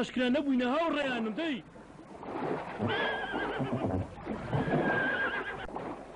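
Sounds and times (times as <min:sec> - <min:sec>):
speech: 0:00.0 - 0:01.8, 0:02.4 - 0:04.1
horse neighing in a Kurdish cartoon: 0:02.8 - 0:05.7.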